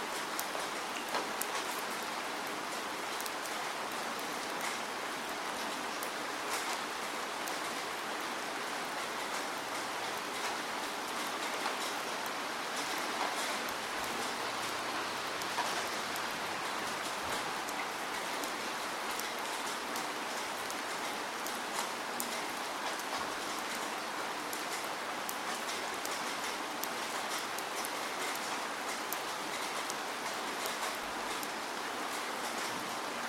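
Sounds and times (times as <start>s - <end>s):
steady dense rain on a surface: 0.0s - 33.2s.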